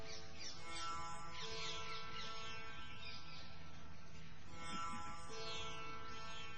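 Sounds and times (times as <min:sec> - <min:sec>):
birds singing: 0:00.0 - 0:06.5.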